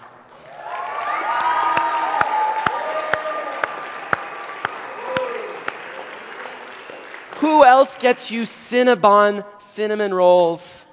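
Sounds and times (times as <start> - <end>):
applause: 0.0 - 7.8
sharp rhythmic claps: 0.0 - 8.2
crowd cheering and whooping: 0.4 - 7.3
speech: 7.8 - 10.7.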